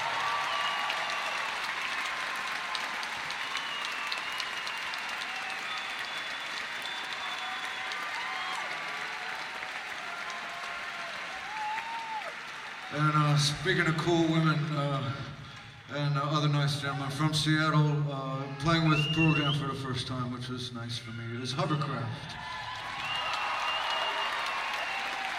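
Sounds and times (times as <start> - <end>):
whoops and cheers: 0.0 - 13.0, 22.3 - 25.3
audience applause: 0.0 - 15.7, 22.3 - 25.3
speech: 12.9 - 15.3, 15.9 - 22.5.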